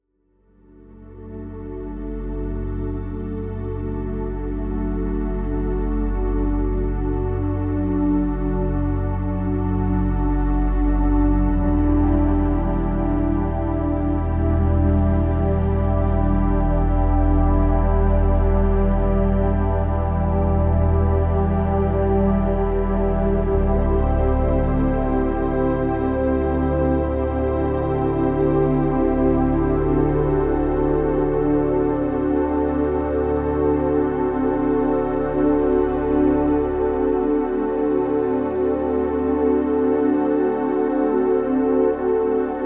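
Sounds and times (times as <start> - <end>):
deep sleep relaxing music: 0.3 - 42.6.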